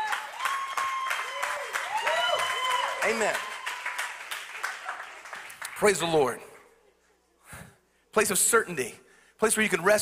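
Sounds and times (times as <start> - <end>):
whoops and cheers: 0.0 - 4.1
church audience applauding: 0.0 - 6.4
speech: 3.0 - 3.5, 5.8 - 6.5, 8.2 - 10.0.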